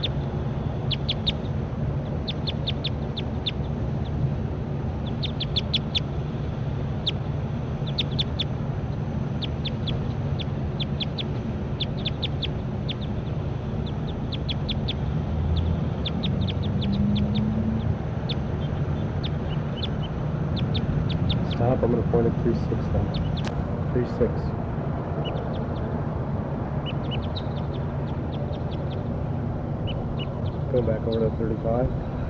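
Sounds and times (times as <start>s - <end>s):
recorded bird calls: 0.0s - 4.2s, 4.9s - 24.5s, 25.1s - 26.0s, 26.7s - 32.2s.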